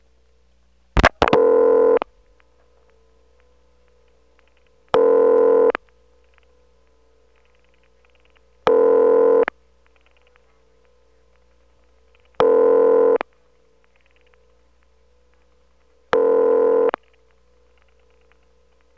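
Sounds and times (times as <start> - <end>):
ringing signal of a 701 PBX telephone exchange: 1.1 - 2.0, 5.0 - 5.8, 8.7 - 9.5, 12.4 - 13.2, 16.1 - 17.0.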